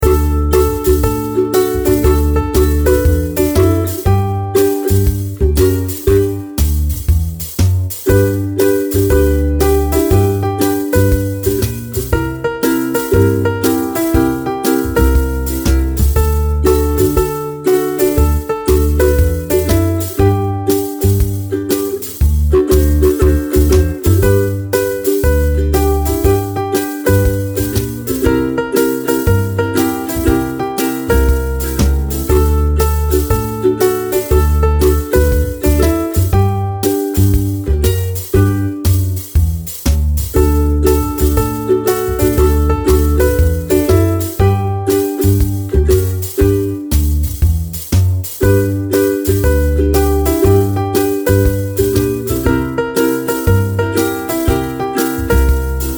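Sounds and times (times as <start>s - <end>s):
rock backing track without vocals: 0.0s - 55.9s.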